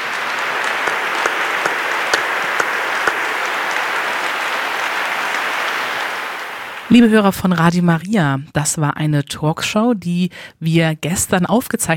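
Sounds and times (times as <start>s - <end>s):
audience applause: 0.0s - 7.2s
speech: 6.9s - 11.9s.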